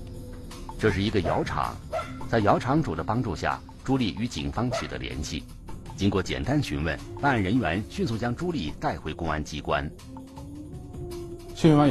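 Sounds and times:
speech: 0:00.8 - 0:10.2, 0:11.6 - 0:11.8
dogs barking: 0:01.1 - 0:02.3, 0:04.6 - 0:05.0.

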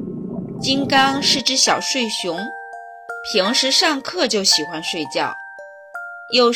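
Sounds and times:
bus engine rumbling: 0:00.2 - 0:02.0
speech: 0:00.6 - 0:02.6, 0:03.2 - 0:05.4, 0:06.3 - 0:06.5.

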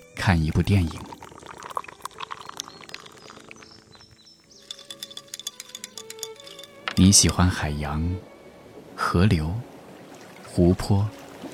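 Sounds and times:
speech: 0:00.2 - 0:01.1, 0:07.0 - 0:08.3, 0:09.1 - 0:09.7, 0:10.6 - 0:11.2
chilled beer pouring into a glass: 0:00.6 - 0:06.8
birds chirping and tweeting: 0:00.8 - 0:07.4.

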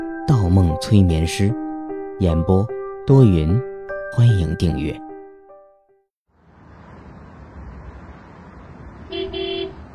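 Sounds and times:
speech: 0:00.5 - 0:01.6, 0:02.2 - 0:05.0
car horns honking: 0:09.0 - 0:09.9.

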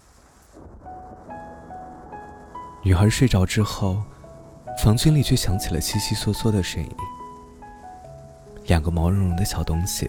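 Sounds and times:
deep thunder rumble: 0:00.0 - 0:07.0
steady rain on a thunderstorm night: 0:00.0 - 0:10.0
speech: 0:02.8 - 0:04.1, 0:04.8 - 0:07.2, 0:08.7 - 0:10.0.

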